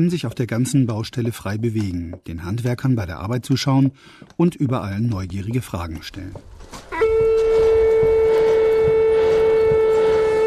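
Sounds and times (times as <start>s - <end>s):
speech: 0.0s - 6.8s
blacksmith blowing a cattle horn: 6.9s - 10.4s.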